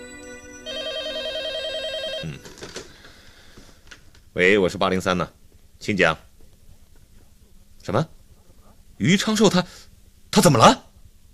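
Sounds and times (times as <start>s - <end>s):
telephone ringing with an electronic warble: 0.0s - 3.1s
speech: 4.4s - 6.3s, 7.9s - 8.2s, 9.0s - 10.8s.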